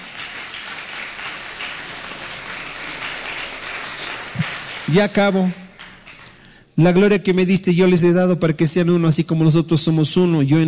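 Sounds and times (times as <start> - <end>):
audience clapping: 0.0 - 6.6
speech: 4.9 - 5.6, 6.8 - 10.6.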